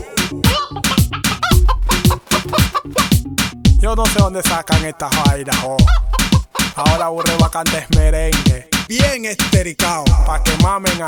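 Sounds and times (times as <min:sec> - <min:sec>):
chicken clucking sound effect: 0:00.0 - 0:03.4, 0:04.0 - 0:08.0
speech: 0:00.3 - 0:00.5, 0:03.9 - 0:11.0.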